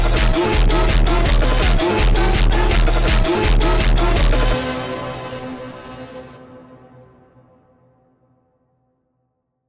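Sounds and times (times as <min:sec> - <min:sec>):
sped up funk music: 0:00.0 - 0:05.2.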